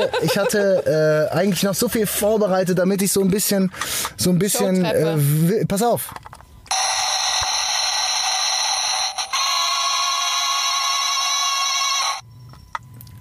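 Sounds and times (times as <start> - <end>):
laughter: 0.0 - 1.3
speech: 0.0 - 6.4
plastic toy sound machine weapon sound effect: 6.7 - 12.2.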